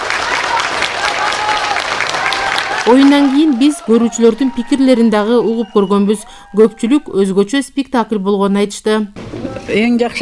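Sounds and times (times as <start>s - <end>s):
full hall of spectators applauding actors after a stage play: 0.0s - 6.6s
speech: 2.9s - 10.2s.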